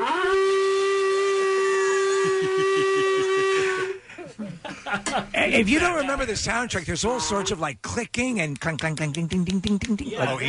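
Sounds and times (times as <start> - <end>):
ram's horn being blown: 0.0 - 4.0, 7.0 - 7.6
laughter: 2.2 - 6.6
speech: 5.4 - 10.4.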